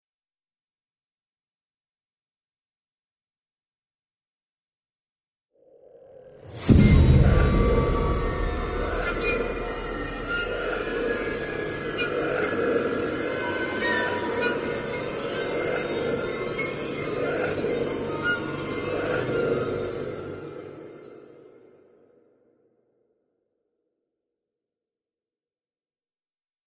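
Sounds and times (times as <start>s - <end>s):
creepy sound: 5.9s - 21.8s.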